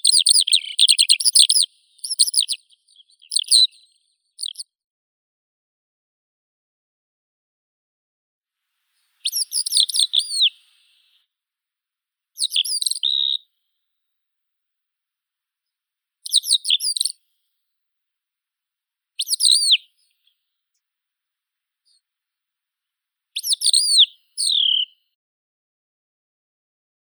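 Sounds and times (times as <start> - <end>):
skylark Alauda arvensis: 0.0 - 4.7, 9.1 - 11.2, 12.4 - 13.4, 16.2 - 17.2, 19.2 - 19.9, 23.4 - 25.0.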